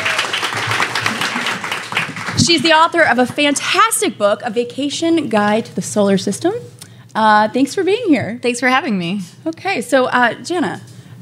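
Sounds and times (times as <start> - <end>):
audience applause: 0.0 - 2.7
speech: 2.4 - 11.2.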